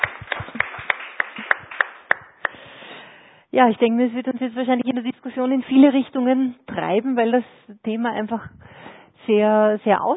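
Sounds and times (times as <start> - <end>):
few hands clapping after presentations at a panel discussion: 0.0 - 2.6
speech: 3.6 - 8.6, 9.2 - 10.1.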